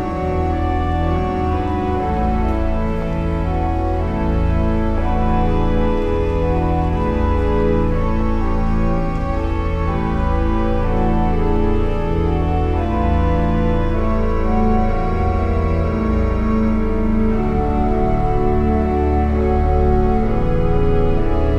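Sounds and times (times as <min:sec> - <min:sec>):
organ playing a chorale prelude in St. John's Cathedral in Jacksonville Florida: 0:00.0 - 0:21.5.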